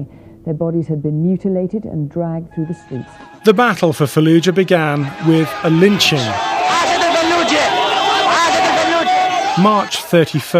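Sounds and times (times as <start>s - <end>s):
speech: 0.0s - 6.8s, 9.6s - 10.5s
jubilant crowd shouting in the streets: 3.1s - 10.5s
excited chatter: 3.4s - 10.5s.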